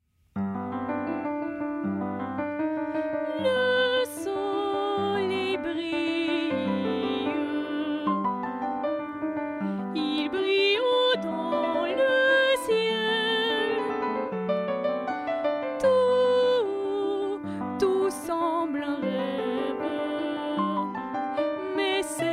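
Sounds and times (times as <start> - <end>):
French song: 0.5 - 22.3.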